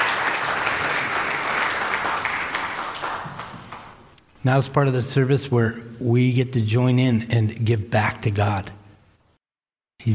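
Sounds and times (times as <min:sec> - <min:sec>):
crowd clapping: 0:00.0 - 0:04.1
speech: 0:04.4 - 0:08.8.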